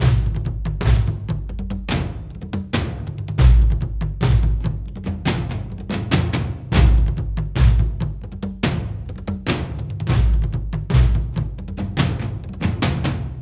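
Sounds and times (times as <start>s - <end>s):
drums: 0.0s - 13.4s.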